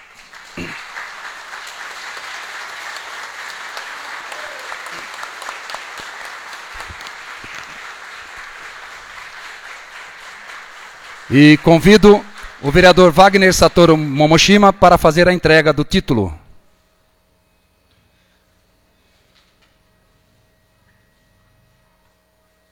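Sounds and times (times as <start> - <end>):
audience applause: 0.0 - 14.4
speech: 11.3 - 16.4.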